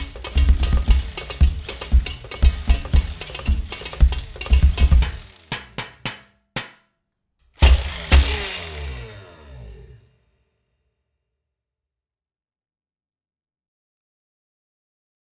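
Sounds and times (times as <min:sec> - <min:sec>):
samba music: 0:00.0 - 0:06.2.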